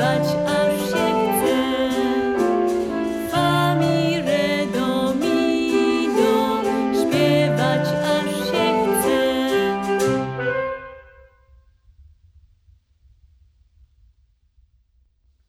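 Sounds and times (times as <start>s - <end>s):
vocal and instrumental song: 0.0s - 10.7s.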